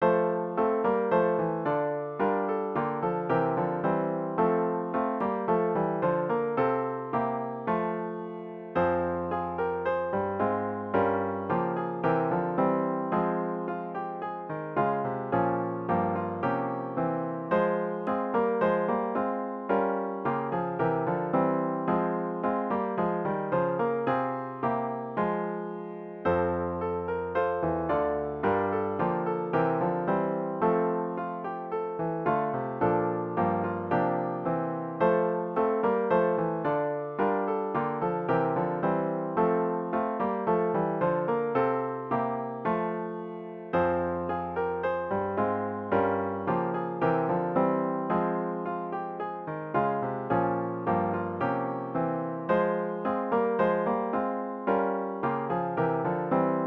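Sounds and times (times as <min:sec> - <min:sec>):
hymn on piano with intro: 0:00.0 - 0:56.6.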